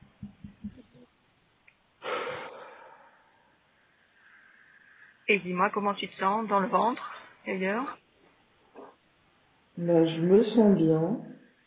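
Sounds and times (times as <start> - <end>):
person taking a deep breath: 2.0 - 5.2
speech: 5.3 - 8.0, 9.8 - 11.3.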